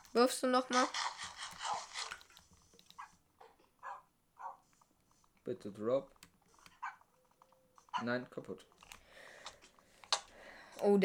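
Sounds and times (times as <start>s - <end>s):
speech: 0.1s - 1.2s, 5.5s - 6.2s, 8.0s - 8.7s, 10.8s - 11.0s
dogs in the video game Minecraft barking or whining: 3.0s - 4.7s, 6.5s - 8.2s.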